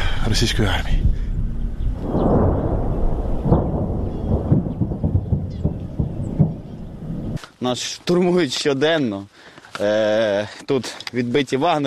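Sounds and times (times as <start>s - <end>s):
speech: 0.2s - 1.2s, 7.6s - 11.8s
anti-tank missile launch: 1.4s - 7.3s.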